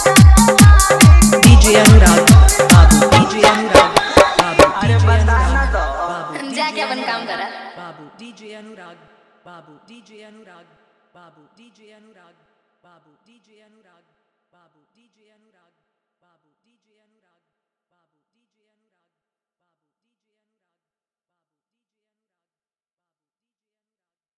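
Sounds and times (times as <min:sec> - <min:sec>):
Bhojpuri DJ song with dholak and bass: 0:00.0 - 0:05.9.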